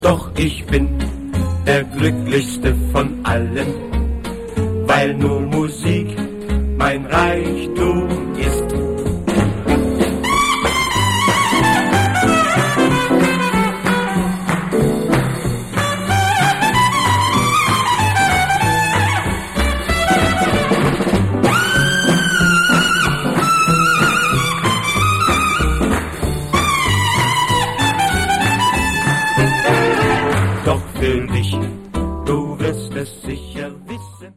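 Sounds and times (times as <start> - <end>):
jazz music: 0.1 - 34.2.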